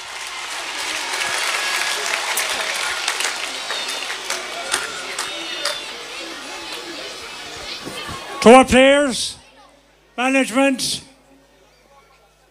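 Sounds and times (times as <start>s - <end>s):
cheers and whistles: 0.0s - 8.4s
crowd applauding: 0.0s - 8.8s
speech: 8.4s - 9.4s, 10.2s - 11.1s.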